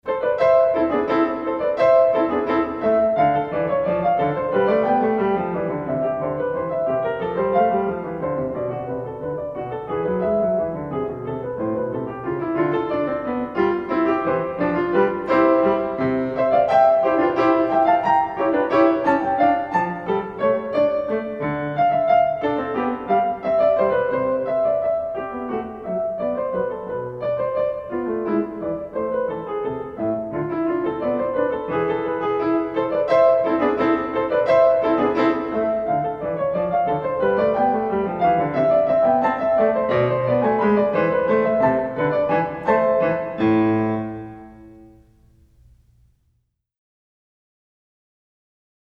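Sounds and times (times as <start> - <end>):
bourree in A minor: 0.0 - 46.2.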